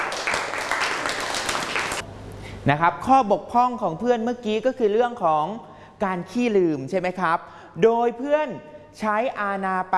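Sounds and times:
classmates in a classroom clapping for a student: 0:00.0 - 0:02.0
speech: 0:02.6 - 0:09.9.

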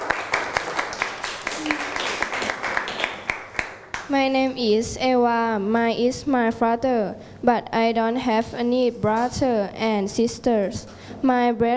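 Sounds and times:
classroom applause: 0:00.0 - 0:04.1
speech: 0:04.1 - 0:11.7.

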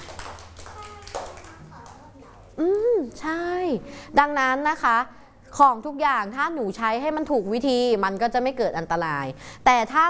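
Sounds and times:
children clapping hands: 0:00.0 - 0:02.1
speech: 0:02.6 - 0:10.0.

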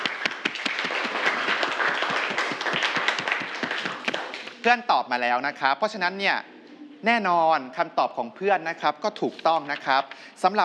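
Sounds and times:
students clapping for a classmate: 0:00.0 - 0:04.7
speech: 0:04.6 - 0:10.6.

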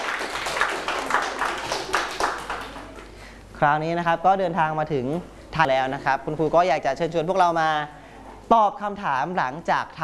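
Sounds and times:
students clapping for a classmate: 0:00.0 - 0:03.2
speech: 0:03.6 - 0:10.0.

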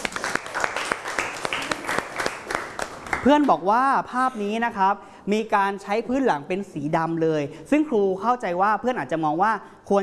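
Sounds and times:
classroom applause: 0:00.0 - 0:03.5
speech: 0:03.2 - 0:10.0.

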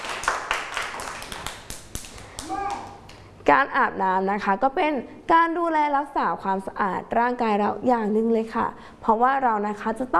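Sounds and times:
children clapping hands: 0:00.0 - 0:03.2
speech: 0:03.5 - 0:10.1.

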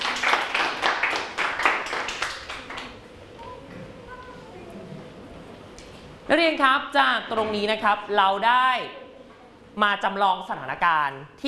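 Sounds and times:
students clapping hands: 0:00.0 - 0:03.0
speech: 0:06.3 - 0:09.0, 0:09.8 - 0:11.4.

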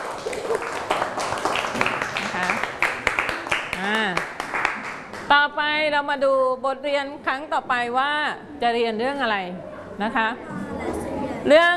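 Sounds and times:
children clapping hands: 0:00.0 - 0:05.3
speech: 0:05.9 - 0:10.6, 0:11.4 - 0:11.7.

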